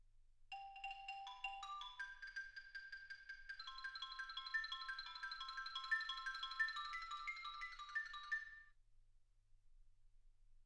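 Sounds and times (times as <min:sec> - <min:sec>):
xylophone: 0:00.5 - 0:08.7.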